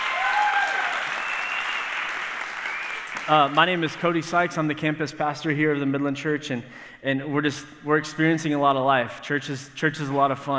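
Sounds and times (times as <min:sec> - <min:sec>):
audience applause: 0:00.0 - 0:03.8
speech: 0:03.3 - 0:10.5.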